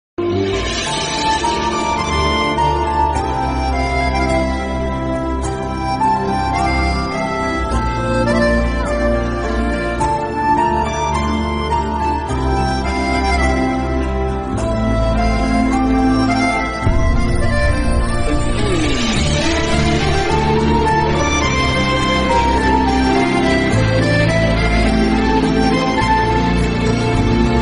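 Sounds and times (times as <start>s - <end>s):
love romantic tune: 0.2s - 27.6s.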